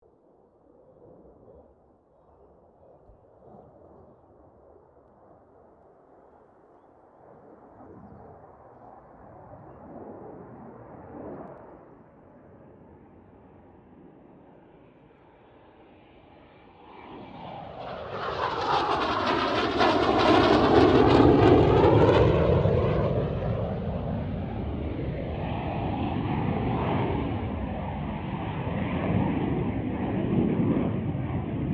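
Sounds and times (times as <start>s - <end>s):
CA-27 Sabre jet aircraft passing: 7.7s - 31.7s.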